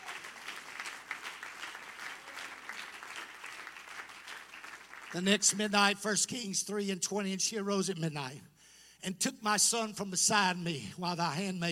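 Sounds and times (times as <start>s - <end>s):
audience clapping hands: 0.0s - 5.8s
speech: 5.1s - 11.7s.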